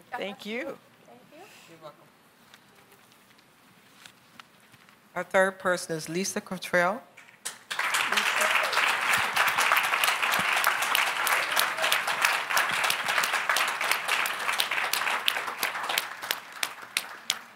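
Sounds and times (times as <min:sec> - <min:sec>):
speech: 0:00.2 - 0:00.9, 0:01.7 - 0:02.2, 0:05.2 - 0:07.1
crowd applauding: 0:07.5 - 0:17.5.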